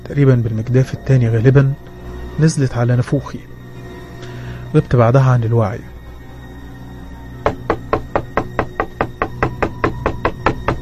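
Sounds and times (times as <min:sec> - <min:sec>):
speech: 0:00.1 - 0:03.5, 0:04.7 - 0:05.9
continuous knocking like pounding on a door: 0:07.4 - 0:10.8.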